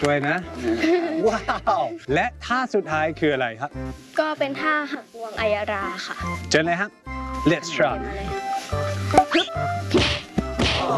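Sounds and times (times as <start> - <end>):
speech: 0.0 - 10.1
laughter: 0.6 - 2.0
martial-arts caught kick strike thwacks: 9.1 - 10.9.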